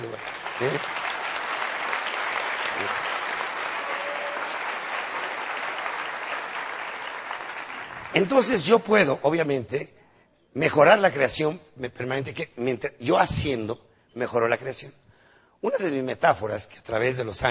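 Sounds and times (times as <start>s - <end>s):
audience applause: 0.0s - 8.6s
speech: 0.6s - 1.0s, 2.8s - 3.0s, 8.2s - 10.0s, 10.6s - 15.0s, 15.6s - 17.4s.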